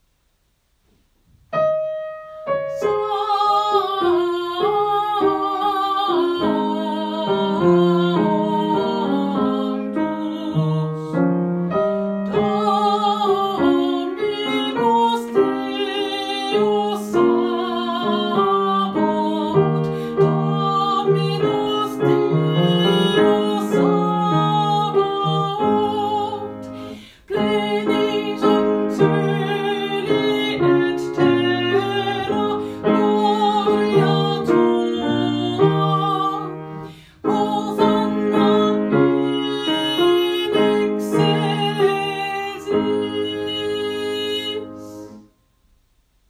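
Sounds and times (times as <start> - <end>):
alto voice singing: 1.8 - 45.3.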